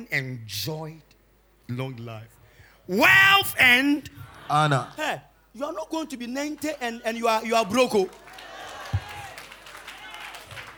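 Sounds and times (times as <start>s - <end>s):
speech: 0.0s - 1.1s, 1.7s - 8.5s
audience clapping: 7.5s - 10.7s.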